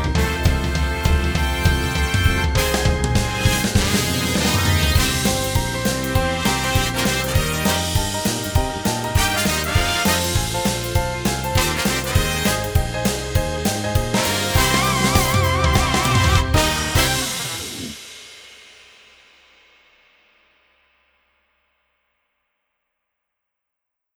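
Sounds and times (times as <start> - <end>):
jingle: 0.2 - 17.8.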